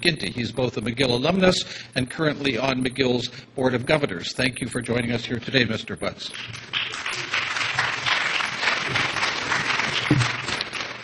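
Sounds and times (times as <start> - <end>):
speech: 0.0 - 7.0
audience applause: 6.4 - 11.0.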